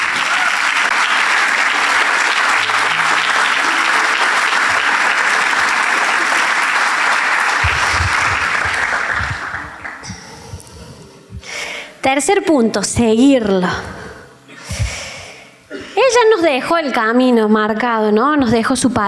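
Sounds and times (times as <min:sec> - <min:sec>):
audience applause for pastors: 0:00.0 - 0:10.3
speech: 0:12.0 - 0:13.9, 0:16.2 - 0:19.0.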